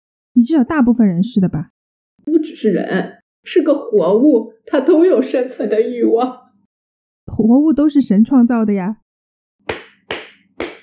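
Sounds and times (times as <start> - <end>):
speech: 0.4 - 6.4, 7.3 - 9.0
hand claps: 9.6 - 10.8.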